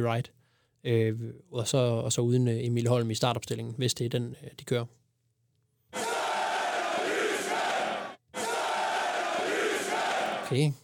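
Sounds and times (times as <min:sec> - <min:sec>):
speech: 0:00.0 - 0:05.0, 0:10.5 - 0:10.8
stadium stand crowd shouting a chant: 0:06.0 - 0:10.6.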